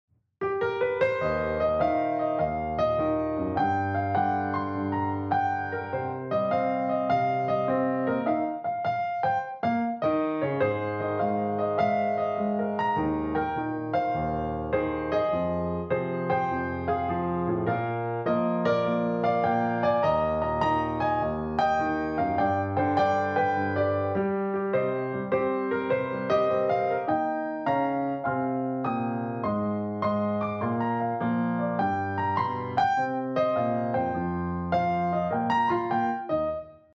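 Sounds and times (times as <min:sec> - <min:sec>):
piano: 0:00.4 - 0:36.9.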